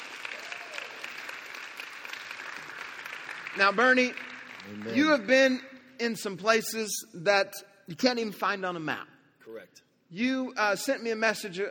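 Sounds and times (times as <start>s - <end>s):
audience applause welcoming a guest: 0.0s - 5.1s
speech: 3.6s - 11.6s.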